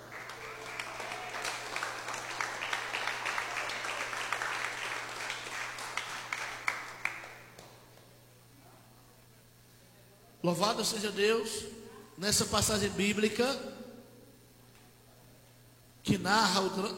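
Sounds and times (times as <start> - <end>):
audience clapping: 0.0 - 8.1
speech: 10.5 - 13.7, 16.1 - 16.9.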